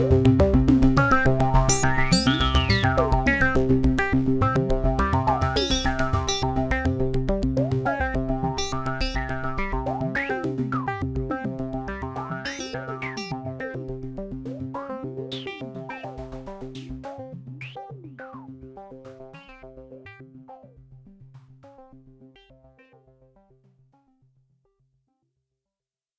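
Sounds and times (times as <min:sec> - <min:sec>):
synthesizer arpeggio: 0:00.0 - 0:21.1.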